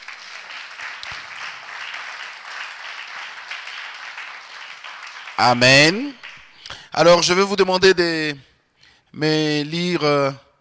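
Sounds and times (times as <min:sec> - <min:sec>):
audience applauding: 0:00.0 - 0:06.6
speech: 0:05.4 - 0:06.2, 0:07.0 - 0:08.5, 0:09.1 - 0:10.4.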